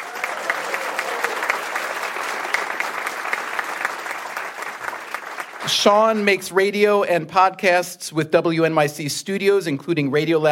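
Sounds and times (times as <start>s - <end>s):
audience at a live event applauding to welcome a guest: 0.0s - 6.2s
speech: 5.7s - 10.5s.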